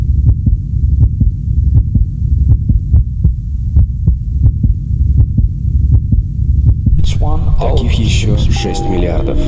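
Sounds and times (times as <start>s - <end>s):
human heartbeat: 0.0s - 7.0s
constant low rumble: 0.0s - 9.4s
speech: 7.6s - 9.4s.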